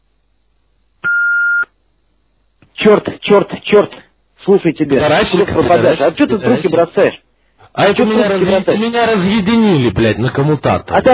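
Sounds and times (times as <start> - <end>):
answering machine beep after the outgoing message: 1.0 - 1.7
speech: 2.8 - 11.1.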